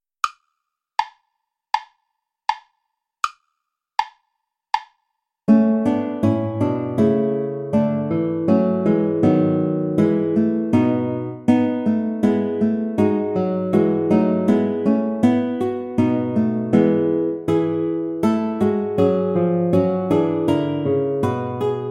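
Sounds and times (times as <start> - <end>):
play-along backing track without guitar: 5.5 - 21.8.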